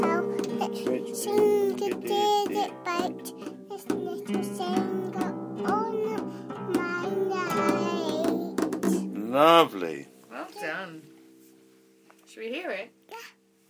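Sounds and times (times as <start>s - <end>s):
person singing: 0.0s - 10.0s.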